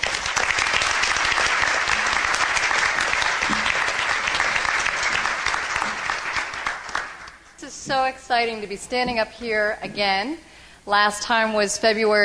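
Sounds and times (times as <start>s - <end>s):
audience applause welcoming the chair of the Quadruplicity 2009 event: 0.0s - 7.4s
speech: 7.9s - 12.2s.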